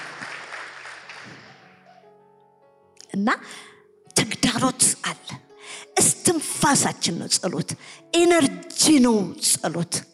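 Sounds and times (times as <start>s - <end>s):
audience applause: 0.0s - 1.8s
speech: 3.1s - 3.8s, 4.5s - 10.1s.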